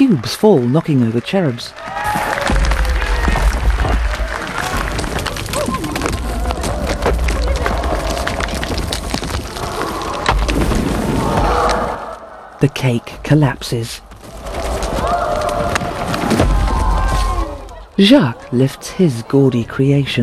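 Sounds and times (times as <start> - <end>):
crowd cheering: 0.0 - 20.2
speech: 0.1 - 2.0, 12.6 - 14.1, 18.0 - 20.2.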